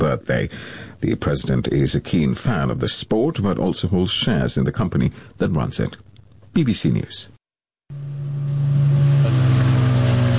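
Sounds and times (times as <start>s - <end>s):
speech: 0.1s - 7.4s
motorboat engine droning: 7.9s - 10.3s.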